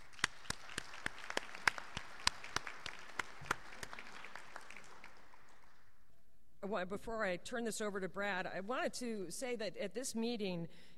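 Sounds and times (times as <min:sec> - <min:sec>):
audience applause: 0:00.0 - 0:05.9
speech: 0:06.7 - 0:10.9.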